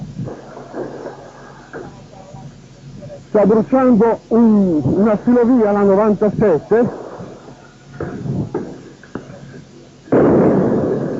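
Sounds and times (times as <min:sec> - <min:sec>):
bomb explosion: 0:00.1 - 0:02.0, 0:06.8 - 0:09.4, 0:10.1 - 0:11.1
speech: 0:03.4 - 0:07.0.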